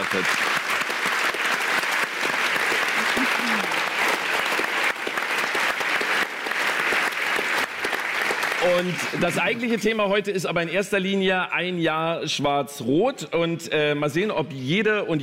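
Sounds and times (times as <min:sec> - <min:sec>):
audience applause: 0:00.0 - 0:10.0
speech: 0:00.1 - 0:00.5, 0:08.7 - 0:15.2.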